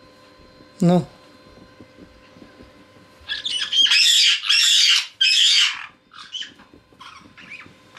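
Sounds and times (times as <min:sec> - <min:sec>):
speech: 0:00.8 - 0:01.2
caique squawking: 0:03.3 - 0:07.9.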